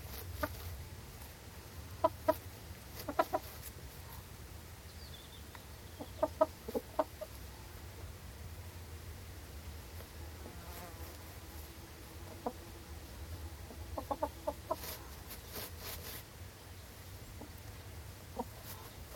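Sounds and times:
chickens scratching in grass for corn: 0.0 - 4.4, 9.6 - 19.1
very gentle wind in trees: 0.0 - 19.1
cockerel and hens outdoors: 0.1 - 1.3, 1.9 - 4.3, 5.9 - 7.8, 10.0 - 16.2, 17.2 - 19.1.

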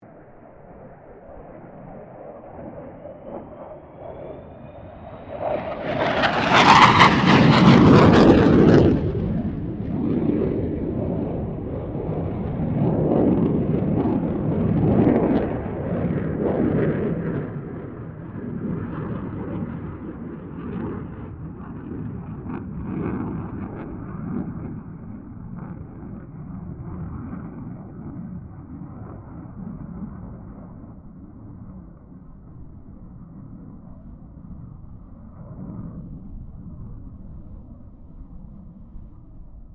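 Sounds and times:
FA-18 Hornet aircraft passing: 0.6 - 31.8.

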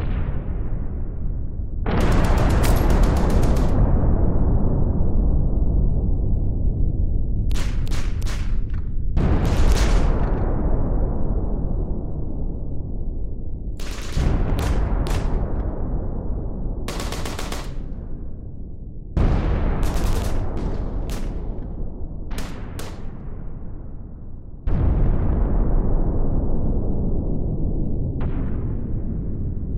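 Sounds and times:
WWII battlefield explosions: 0.0 - 6.6, 7.4 - 12.6, 13.8 - 18.5, 19.2 - 29.6
WWII battlefield gunfire: 1.9 - 4.0, 7.5 - 10.5, 13.8 - 15.7, 16.9 - 18.2, 19.2 - 21.7, 22.3 - 23.3.

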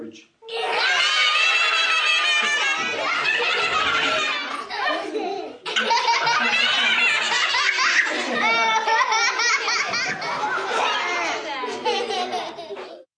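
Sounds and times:
young children screaming: 0.5 - 5.0, 5.7 - 11.5
group of young children laughing at clown: 0.5 - 13.1.

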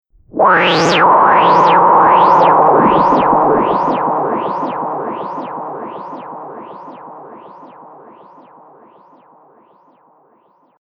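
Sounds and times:
chaotic electronic wind whoosh: 0.3 - 8.8.

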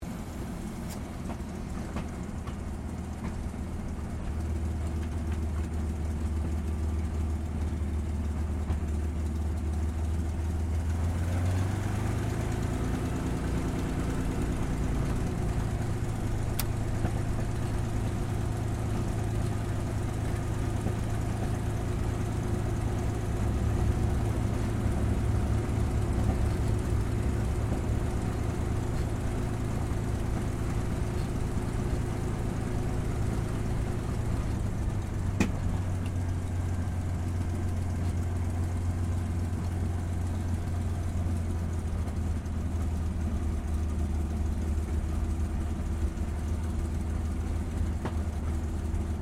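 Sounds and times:
CAC CA-18 Mustang Mk23 aircraft taxiing, heard from interior: 0.0 - 49.2.

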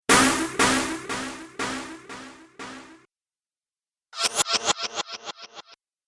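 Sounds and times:
sci-fi dubstep effects: 0.1 - 3.0, 4.2 - 5.8.

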